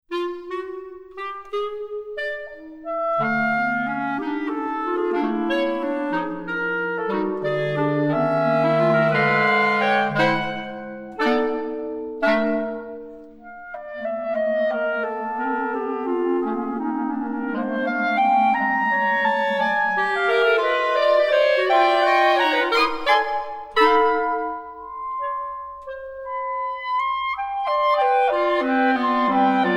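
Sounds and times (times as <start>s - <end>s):
clarinet pieces: 0.1s - 29.7s.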